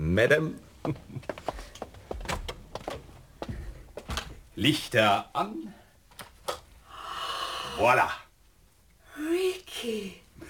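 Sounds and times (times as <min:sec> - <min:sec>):
speech: 0:00.2 - 0:01.3, 0:04.6 - 0:05.8, 0:07.8 - 0:08.2, 0:09.8 - 0:10.2
cabin door thuds: 0:01.6 - 0:04.7.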